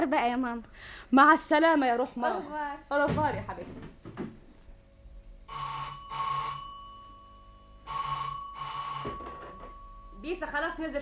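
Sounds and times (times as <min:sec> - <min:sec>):
speech: 0:00.0 - 0:04.0, 0:10.2 - 0:11.0
home telephone with trilling bell ringing: 0:05.5 - 0:10.2.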